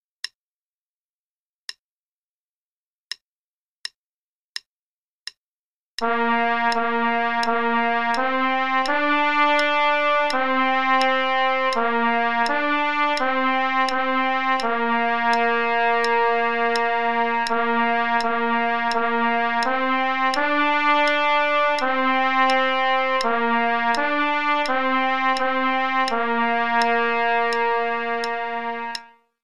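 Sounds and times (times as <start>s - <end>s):
trumpet play-along: 6.0s - 29.2s.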